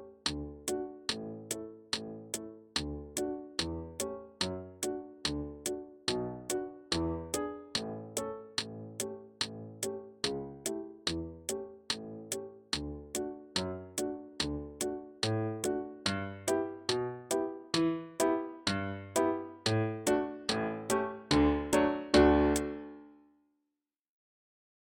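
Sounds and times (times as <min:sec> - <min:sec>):
metronome clicks: 0:00.3 - 0:22.8
gavotte dance music at full tempo: 0:21.3 - 0:22.8.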